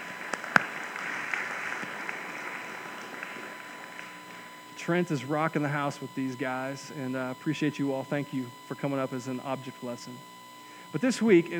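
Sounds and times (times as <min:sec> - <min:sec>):
audience applause: 0:00.0 - 0:04.4
speech: 0:04.8 - 0:10.3, 0:10.9 - 0:11.5.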